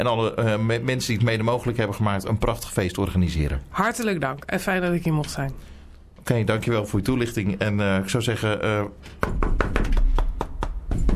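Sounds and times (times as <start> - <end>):
speech: 0.0 - 10.0
knocking on a door at a Sinterklaas celebration: 9.2 - 11.1.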